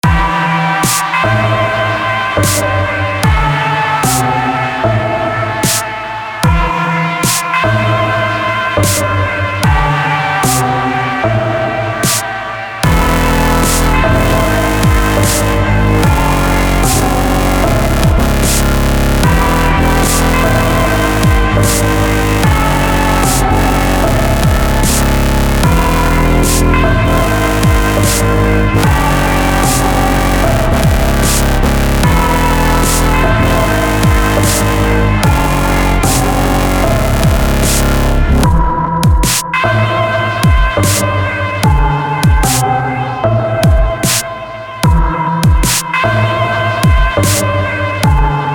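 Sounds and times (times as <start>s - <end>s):
dubstep music: 0.0s - 48.5s.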